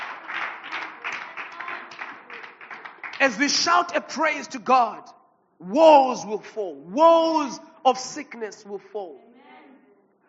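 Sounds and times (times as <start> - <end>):
audience clapping hands: 0.0 - 4.3
speech: 3.2 - 9.3.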